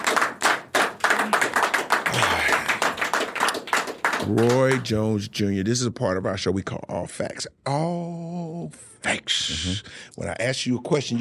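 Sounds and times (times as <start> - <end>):
audience applause: 0.0 - 4.9
speech: 4.3 - 11.2.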